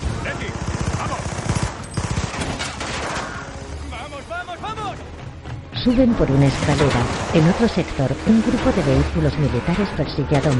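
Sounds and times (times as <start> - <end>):
machine gun fire in an action film scene: 0.0 - 3.2
speech: 5.8 - 10.5.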